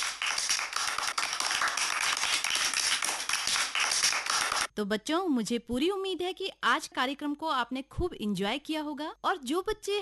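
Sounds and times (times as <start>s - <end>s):
children's applause: 0.0s - 4.7s
speech: 4.8s - 10.0s.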